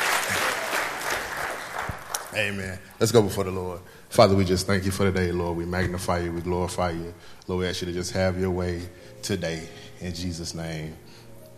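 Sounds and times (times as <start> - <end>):
audience applauding: 0.0 - 2.6
speech: 2.4 - 11.1.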